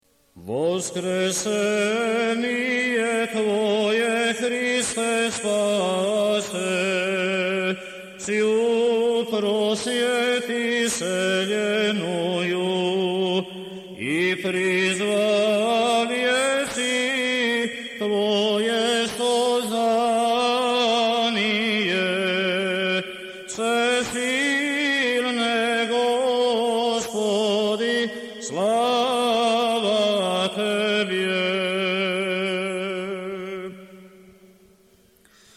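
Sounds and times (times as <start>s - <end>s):
church chant in the second tone: 0.4s - 34.7s.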